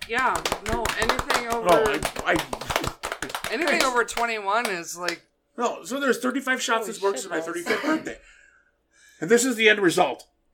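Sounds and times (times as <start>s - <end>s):
scattered applause: 0.0s - 5.2s
speech: 0.1s - 2.9s, 3.5s - 8.4s, 9.2s - 10.3s.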